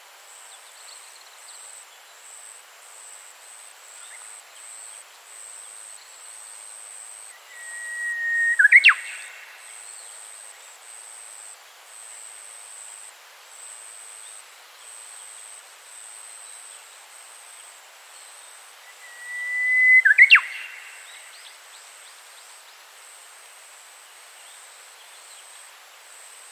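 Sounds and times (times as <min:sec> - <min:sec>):
Japanese bush warbler whistled song: 0:07.3 - 0:10.1, 0:18.8 - 0:21.5.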